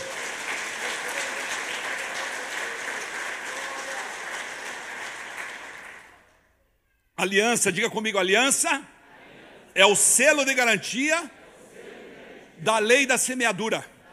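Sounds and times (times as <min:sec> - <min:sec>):
audience applause: 0:00.0 - 0:06.3
speech: 0:07.2 - 0:09.0, 0:09.8 - 0:11.4, 0:12.6 - 0:13.9.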